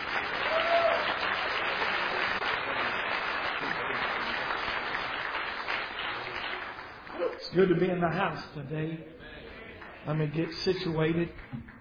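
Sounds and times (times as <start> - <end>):
audience applause welcoming a speaker: 0.0 - 7.5
speech: 7.5 - 9.2, 10.0 - 11.7.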